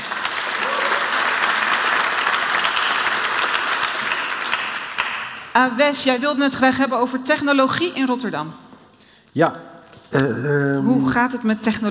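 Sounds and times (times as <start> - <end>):
audience applauding: 0.0 - 5.5
speech: 5.6 - 8.6, 9.3 - 11.8.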